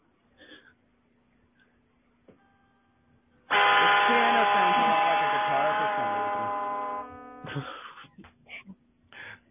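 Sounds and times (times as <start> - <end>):
piano keyboard playing one loud buzzy note: 3.5 - 7.8.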